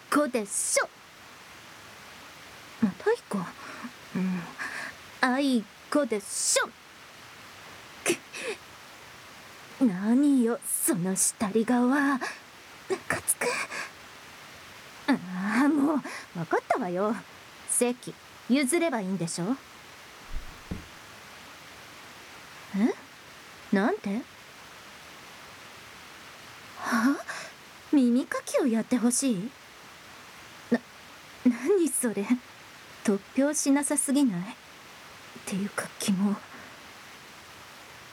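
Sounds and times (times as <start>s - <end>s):
rain: 0.0s - 38.1s
ear cleaning scratching in the left ear: 20.3s - 20.9s.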